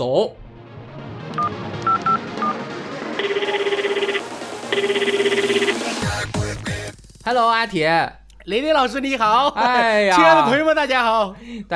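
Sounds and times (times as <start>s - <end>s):
speech: 0.0s - 0.4s, 5.0s - 11.7s
telephone dialing tones: 3.2s - 5.8s.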